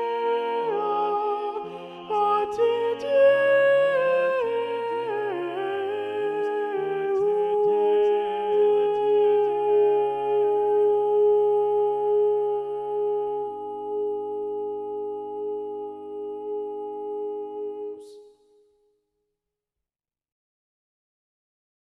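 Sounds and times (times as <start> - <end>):
predominant soprano singing: 0.0 - 18.3.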